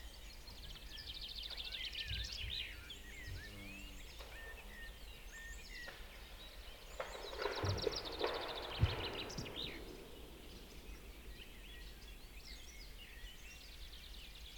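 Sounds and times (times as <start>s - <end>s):
birds singing in a forest in the morning: 0.0s - 14.4s.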